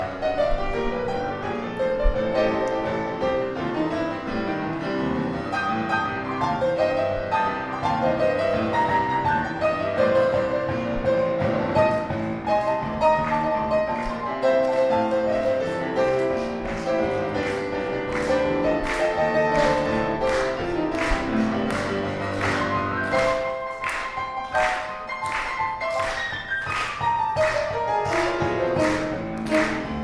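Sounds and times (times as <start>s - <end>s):
piano: 0.0s - 30.0s.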